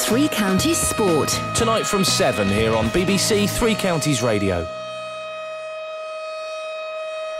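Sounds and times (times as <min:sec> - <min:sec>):
speech: 0:00.1 - 0:04.8
tornado warning alarm siren sound effect: 0:00.2 - 0:07.3.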